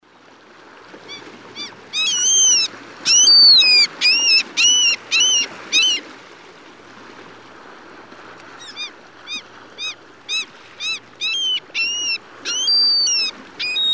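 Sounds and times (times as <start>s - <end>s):
mew gull high mewing calls on the West Coast of the USA: 1.1s - 6.1s, 8.6s - 13.9s.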